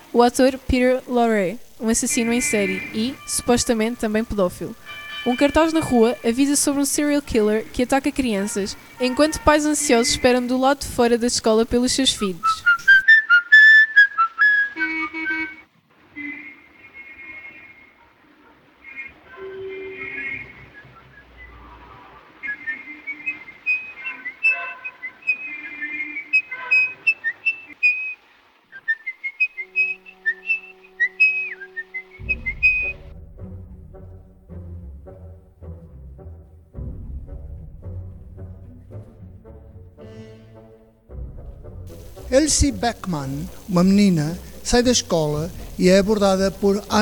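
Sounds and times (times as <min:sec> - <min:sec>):
speech: 0:00.1 - 0:12.8, 0:42.4 - 0:47.0
man whistling a classical melody: 0:12.4 - 0:15.6, 0:22.4 - 0:33.1.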